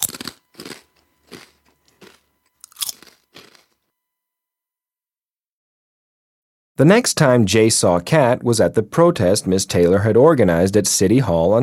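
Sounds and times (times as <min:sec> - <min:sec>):
crunchy cookie being eaten: 0:00.0 - 0:03.8
speech: 0:06.8 - 0:11.6.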